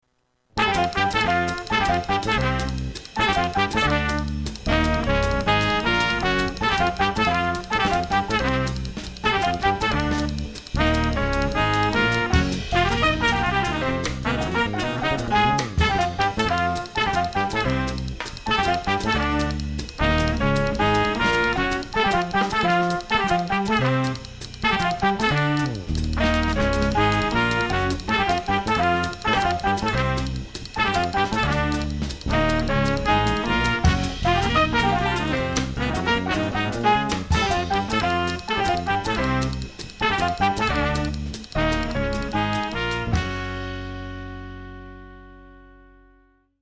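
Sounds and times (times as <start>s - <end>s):
blues music: 0.4s - 46.2s.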